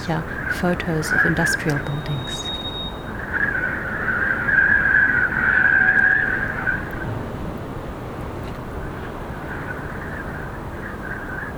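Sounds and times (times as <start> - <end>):
speech: 0.0 - 2.5
wavering high-pitched drone from a rusty building: 0.0 - 6.9
gusty wind: 0.0 - 11.5.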